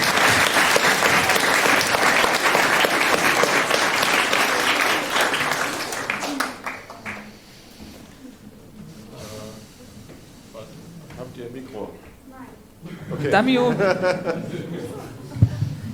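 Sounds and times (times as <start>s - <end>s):
audience applause: 0.0s - 7.4s
laughter: 12.8s - 15.9s
speech: 13.3s - 14.7s.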